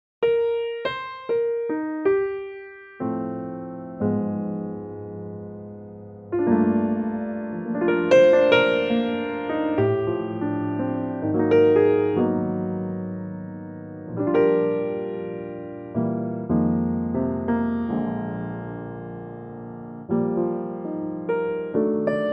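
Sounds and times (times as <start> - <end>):
E flat piano track: 0.2 - 22.3.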